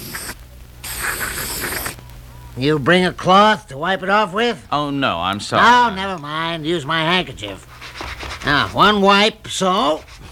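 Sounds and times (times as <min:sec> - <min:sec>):
aerosol spray from a can of Otis bathroom cleanser on a bloodstain: 0:00.0 - 0:02.0
speech: 0:02.6 - 0:07.7, 0:08.4 - 0:10.3.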